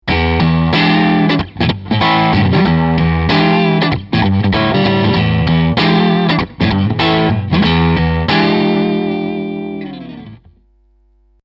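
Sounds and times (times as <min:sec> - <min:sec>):
crunch electric guitar on neck pickup: 0:00.0 - 0:10.5.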